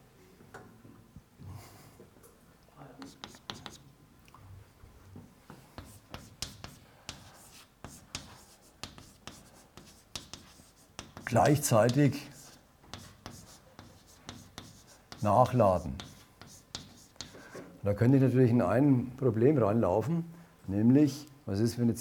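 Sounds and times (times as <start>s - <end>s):
lecturer handwriting scratching: 3.0s - 3.8s, 5.8s - 17.4s
speech: 11.3s - 12.3s, 15.2s - 16.1s, 17.8s - 21.9s.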